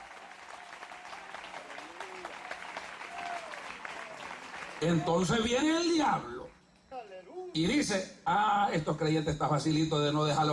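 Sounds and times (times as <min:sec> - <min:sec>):
audience applause: 0:00.0 - 0:05.7
speech: 0:04.8 - 0:06.4, 0:07.6 - 0:10.5.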